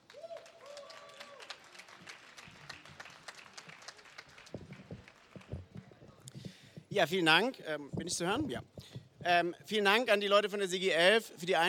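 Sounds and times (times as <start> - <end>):
audience applause: 0.0 - 5.8
speech: 6.9 - 11.6.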